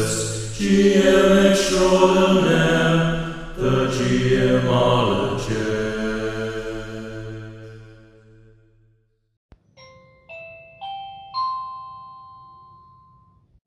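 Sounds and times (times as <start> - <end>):
speech: 0.0 - 6.0
doorbell ringing: 9.8 - 13.5.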